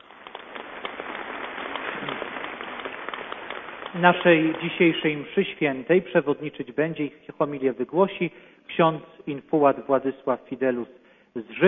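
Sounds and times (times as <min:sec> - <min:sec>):
audience applause: 0:00.0 - 0:05.2
speech: 0:03.9 - 0:11.6.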